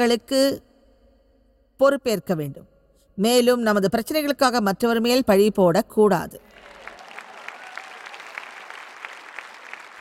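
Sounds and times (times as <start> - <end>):
speech: 0.0 - 0.7, 1.8 - 6.7
audience clapping: 6.5 - 9.9.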